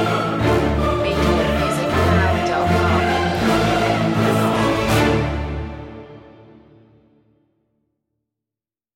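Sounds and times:
choir: 0:00.0 - 0:06.5.

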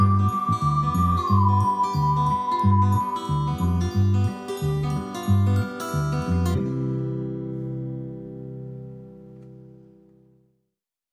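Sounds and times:
whistles: 0:00.0 - 0:04.7
bells: 0:00.0 - 0:06.2
guitars: 0:00.0 - 0:10.3
bass: 0:00.0 - 0:10.4.

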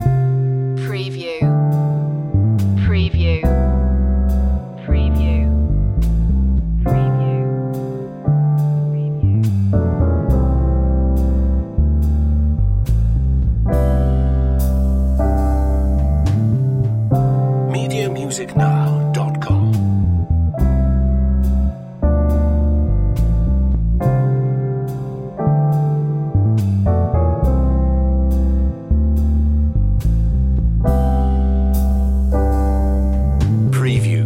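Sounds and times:
jazzy love music loop: 0:00.0 - 0:34.2.

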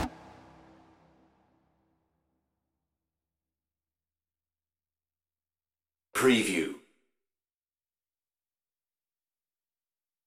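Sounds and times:
apocalyptic music without percussion: 0:00.0 - 0:02.2.

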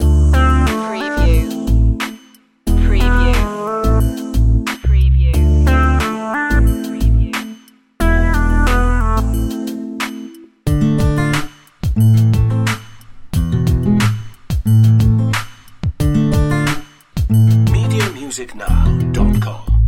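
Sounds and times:
hip hop soul loop: 0:00.0 - 0:19.7.

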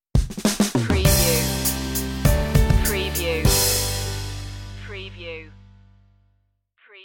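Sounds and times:
music stinger: 0:01.0 - 0:06.2.

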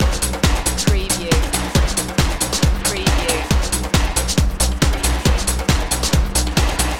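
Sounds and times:
samba party loop: 0:00.0 - 0:06.9.

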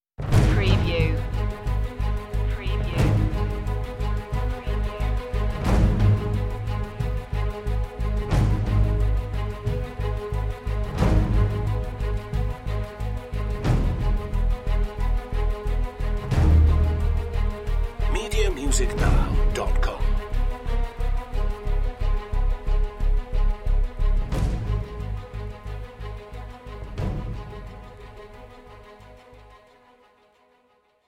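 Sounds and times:
percussion: 0:00.2 - 0:28.4
staccato notes: 0:18.1 - 0:20.2.

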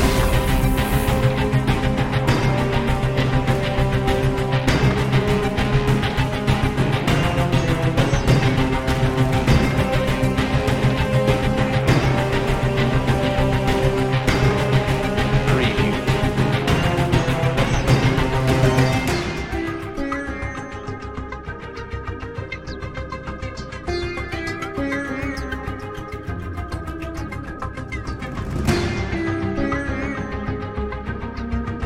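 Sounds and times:
eastern tension music: 0:00.0 - 0:31.8.

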